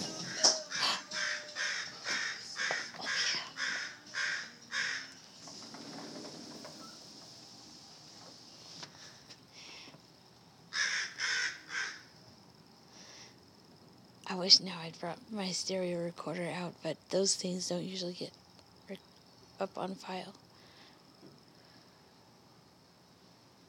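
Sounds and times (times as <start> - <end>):
crows cawing: 0.2 - 5.2, 10.7 - 12.1
speech: 14.4 - 20.4.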